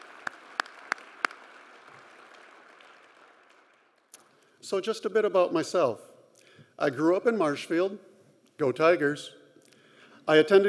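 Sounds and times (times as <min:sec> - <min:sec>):
audience applause: 0:00.0 - 0:04.1
speech: 0:04.7 - 0:06.1, 0:06.8 - 0:09.4, 0:10.3 - 0:10.6.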